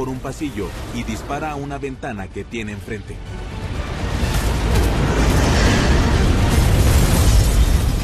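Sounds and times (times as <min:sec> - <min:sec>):
speech: 0:00.0 - 0:03.6
fireball explosion through a door: 0:04.0 - 0:08.0.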